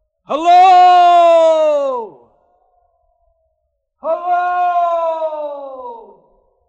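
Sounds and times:
speech: 0.3 - 0.6
shout echoing in a canyon: 0.3 - 2.3, 4.0 - 6.4.

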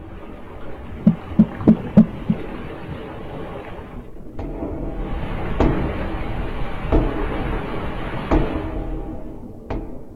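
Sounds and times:
murky underwater rumble: 0.0 - 10.1
underwater banging from submarine search: 0.9 - 3.0, 4.2 - 10.1.

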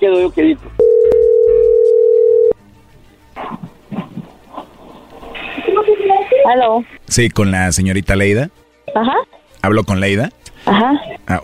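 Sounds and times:
speech: 0.0 - 1.2, 6.5 - 11.4
telephone dialing tone: 0.8 - 2.6.

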